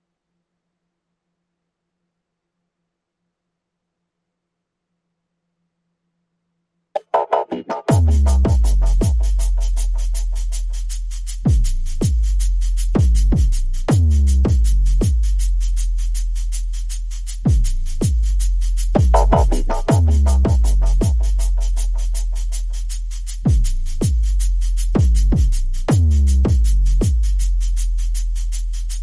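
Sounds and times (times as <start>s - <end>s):
percussion: 7.0s - 29.0s.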